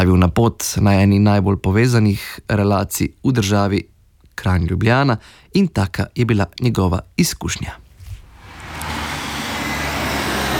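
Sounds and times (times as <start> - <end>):
speech: 0.0 - 7.8
road traffic on a main road past a local bus station in Kranj: 8.3 - 10.5.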